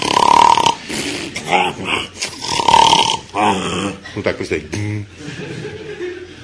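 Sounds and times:
voice imitating snoring: 0:00.0 - 0:04.0
speech: 0:01.5 - 0:02.2, 0:03.4 - 0:05.9
laughter: 0:05.1 - 0:06.4.

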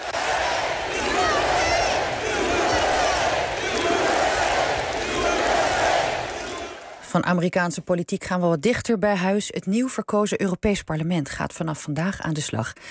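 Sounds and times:
large rally crowd chanting in unison: 0:00.0 - 0:07.1
speech: 0:07.1 - 0:12.8.

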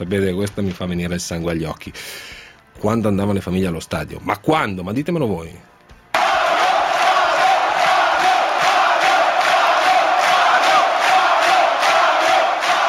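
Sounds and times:
speech: 0:00.0 - 0:05.7
football fans chanting in a stadium: 0:06.2 - 0:12.8.

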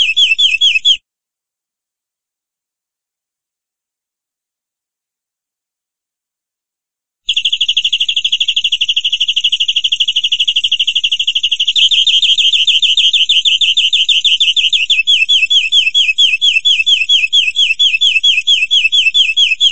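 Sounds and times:
canary singing: 0:00.0 - 0:01.0, 0:07.3 - 0:19.7.

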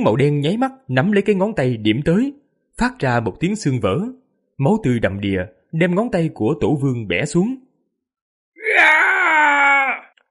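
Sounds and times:
speech: 0:00.0 - 0:07.6
agonized scream of pain: 0:08.6 - 0:10.2.

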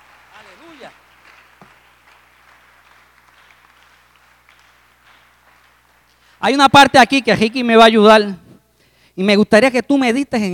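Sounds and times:
congregation applauding during a church service: 0:00.0 - 0:06.4
speech: 0:00.8 - 0:01.0, 0:06.4 - 0:08.4, 0:09.2 - 0:10.5.

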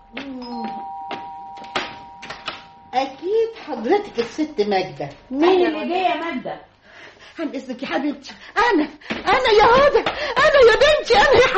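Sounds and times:
doorbell chiming at the front door: 0:00.0 - 0:04.8
sharp knocks: 0:00.2 - 0:02.8
speech: 0:03.0 - 0:06.7, 0:07.3 - 0:11.5.

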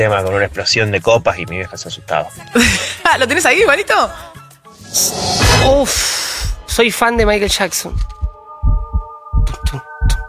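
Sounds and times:
speech: 0:00.0 - 0:08.2
deep booming heartbeat sound effect in a music track: 0:05.4 - 0:10.2.

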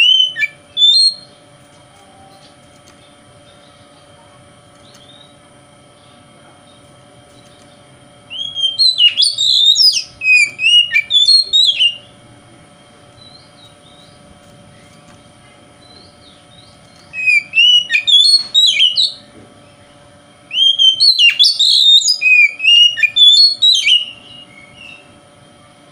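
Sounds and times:
Oriental magpie-robin whistled song: 0:00.0 - 0:01.4, 0:08.3 - 0:12.1, 0:15.8 - 0:19.3, 0:20.5 - 0:25.1
faint hum: 0:00.0 - 0:25.9.

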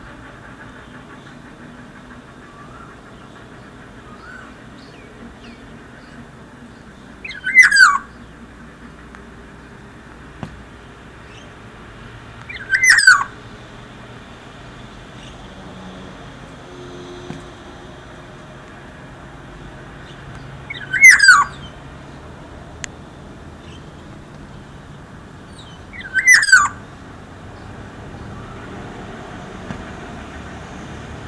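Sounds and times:
black-naped oriole singing a rich whistle: 0:07.2 - 0:08.1, 0:12.5 - 0:13.4, 0:20.7 - 0:21.7, 0:25.5 - 0:26.8.

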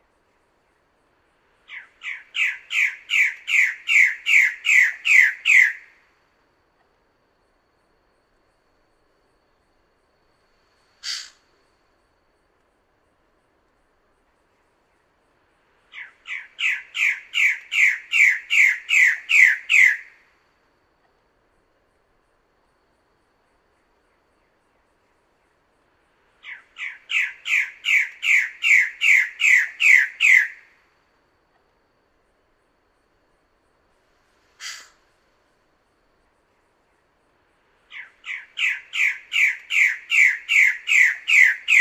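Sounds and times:
bird-of-paradise squawking: 0:01.7 - 0:05.8, 0:11.0 - 0:11.4, 0:16.0 - 0:20.1, 0:26.4 - 0:30.6, 0:34.6 - 0:35.0, 0:37.9 - 0:41.7.

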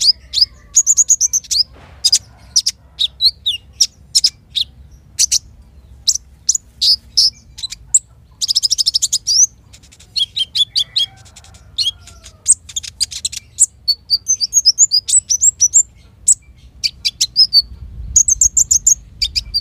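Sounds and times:
caged Van Hasselt's sunbird singing: 0:00.0 - 0:19.5.

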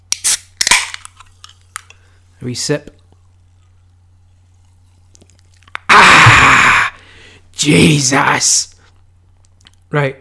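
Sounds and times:
soda can cracking open: 0:00.1 - 0:02.0, 0:05.2 - 0:05.9
speech: 0:02.4 - 0:03.0, 0:07.6 - 0:08.7, 0:09.9 - 0:10.2.

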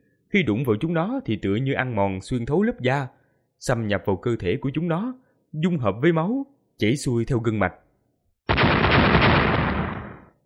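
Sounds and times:
speech: 0:00.3 - 0:07.8
series of explosions: 0:08.5 - 0:10.4.

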